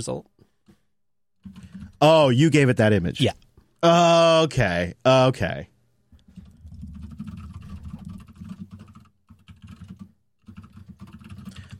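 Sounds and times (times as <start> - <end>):
speech: 0.0 - 0.3, 1.4 - 5.7
typing on a keyboard: 1.4 - 2.0, 6.2 - 11.7.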